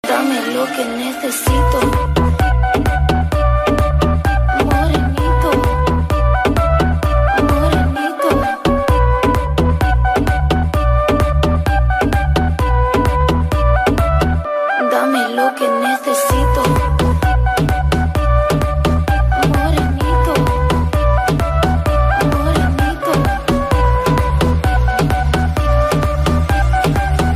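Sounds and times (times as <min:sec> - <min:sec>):
Arabic remix music: 0:00.0 - 0:27.3.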